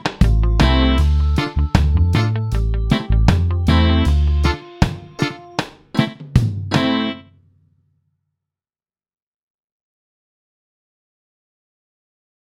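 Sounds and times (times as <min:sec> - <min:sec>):
reggae music: 0:00.0 - 0:07.3.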